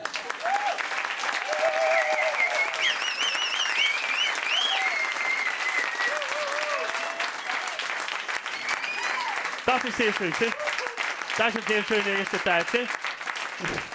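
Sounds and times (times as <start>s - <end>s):
audience clapping: 0.0s - 13.9s
audience whistles and cheers: 0.3s - 9.6s
speech: 9.8s - 10.7s, 11.4s - 13.0s, 13.6s - 13.9s.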